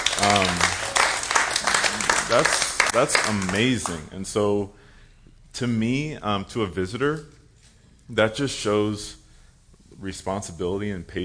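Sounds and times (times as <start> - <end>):
applause: 0.0 - 4.0
speech: 2.3 - 4.8, 5.6 - 7.4, 8.1 - 9.2, 10.0 - 11.2.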